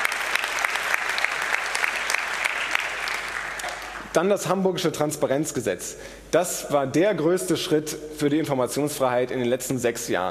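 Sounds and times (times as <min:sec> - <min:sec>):
audience clapping: 0:00.0 - 0:04.1
speech: 0:04.2 - 0:10.3.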